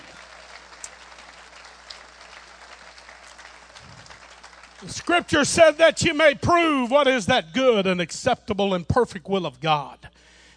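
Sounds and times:
audience hand clapping: 0.0 - 6.0
speech: 4.8 - 10.1.

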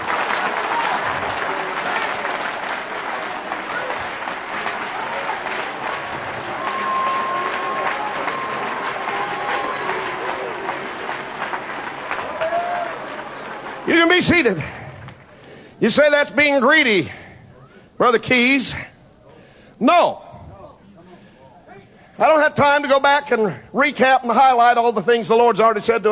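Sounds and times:
large audience clapping: 0.0 - 15.7
speech: 13.9 - 14.8, 15.8 - 17.2, 18.0 - 18.9, 19.8 - 20.2, 22.2 - 26.0.

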